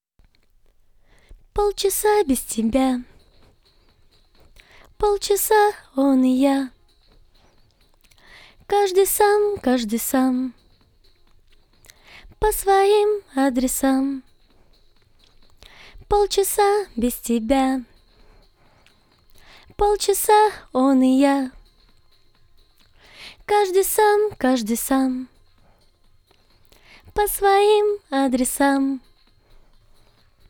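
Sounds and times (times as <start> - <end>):
a cappella lead chorus vocals: 1.6 - 3.2, 4.5 - 6.8, 8.1 - 10.6, 11.8 - 14.3, 15.6 - 18.4, 19.3 - 21.7, 22.8 - 25.7, 26.7 - 29.2.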